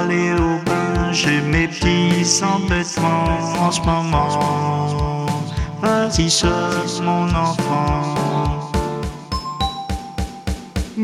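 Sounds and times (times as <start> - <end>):
speech: 0.1 - 8.7
doorbell ringing as the postman calls: 9.3 - 10.8.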